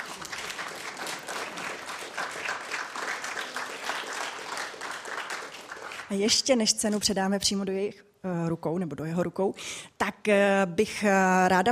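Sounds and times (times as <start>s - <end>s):
audience applause: 0.0s - 6.3s
speech: 6.1s - 11.7s.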